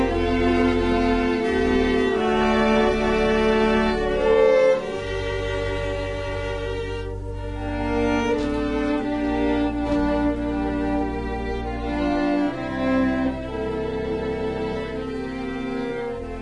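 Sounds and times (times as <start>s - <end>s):
cello in a prelude: 0.0s - 16.4s
organ in a prelude: 0.0s - 16.4s
violin in a prelude: 0.0s - 16.4s.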